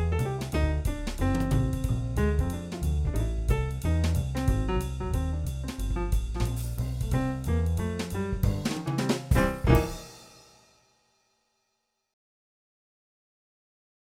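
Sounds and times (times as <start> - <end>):
lounge piano: 0.0 - 10.2.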